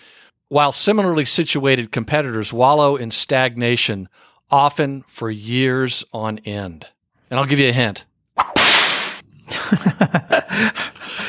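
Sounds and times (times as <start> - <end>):
speech: 0.5 - 8.5, 9.7 - 10.9
whip crack: 8.4 - 9.2
laughter: 9.5 - 11.2.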